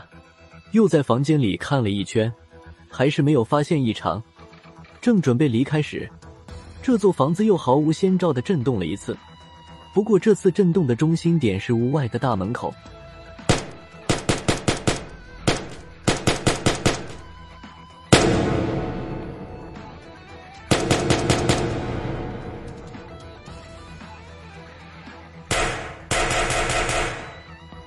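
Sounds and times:
speech: 0:00.7 - 0:04.3, 0:05.0 - 0:06.2, 0:06.8 - 0:09.3, 0:10.0 - 0:13.0
burst of dense gunfire: 0:13.5 - 0:17.5, 0:18.1 - 0:23.5, 0:25.5 - 0:27.6.

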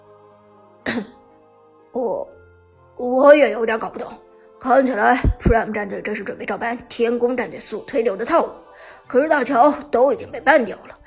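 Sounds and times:
man coughing: 0:00.9 - 0:01.2
throat clearing: 0:00.9 - 0:01.2
speech: 0:01.0 - 0:01.2, 0:02.0 - 0:02.4, 0:03.0 - 0:11.0.

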